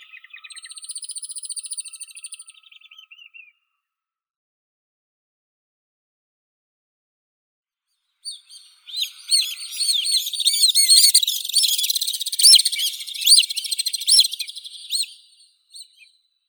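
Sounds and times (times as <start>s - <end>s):
white-bellied swift Apus melba calling: 8.9s - 15.2s.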